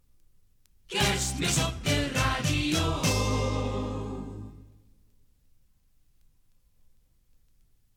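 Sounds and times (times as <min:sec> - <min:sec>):
maxi jingle single: 0:01.0 - 0:04.6.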